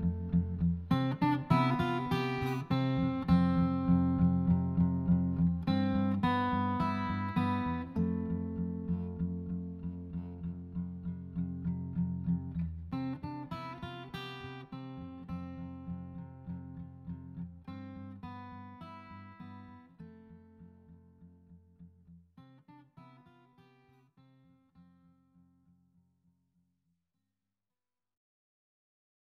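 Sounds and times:
acoustic theme music: 0.0s - 20.9s.

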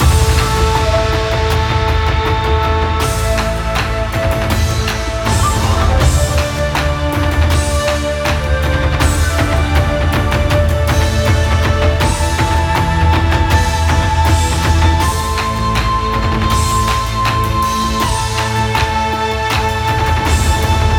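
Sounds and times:
tension music loop: 0.0s - 20.9s.

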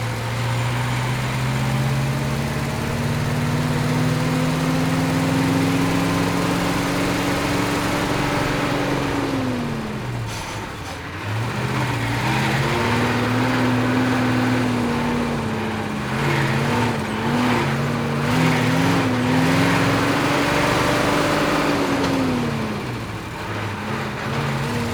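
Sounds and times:
semi-truck driving: 0.0s - 24.9s.

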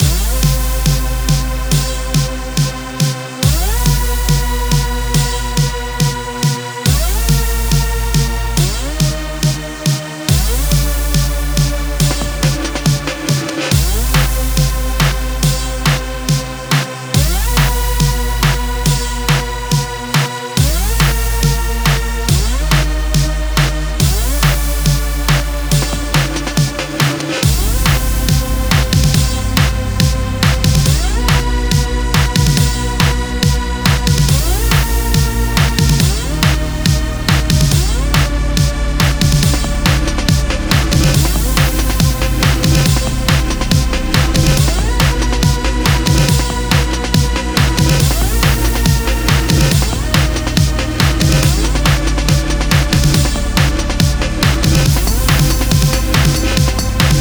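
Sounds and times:
Hoover synth at 140 BPM: 0.0s - 57.1s.

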